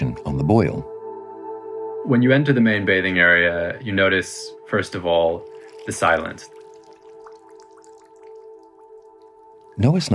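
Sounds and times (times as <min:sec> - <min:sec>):
speech: 0:00.4 - 0:00.9, 0:02.0 - 0:06.6, 0:09.8 - 0:10.1
water dripping in a public bathhouse: 0:05.4 - 0:10.1.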